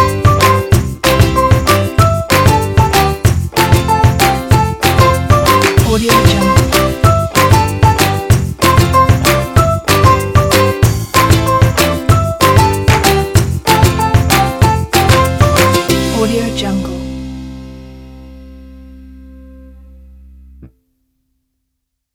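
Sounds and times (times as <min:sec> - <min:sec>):
upbeat acoustic ukulele music: 0:00.0 - 0:17.6.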